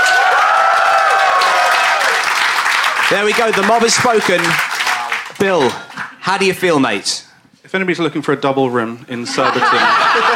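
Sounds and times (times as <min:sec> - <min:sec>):
studio audience applause voting in a comedy mock-court segment: 0:00.0 - 0:06.2
speech: 0:03.1 - 0:04.8, 0:05.4 - 0:10.3
laughter: 0:09.1 - 0:10.3.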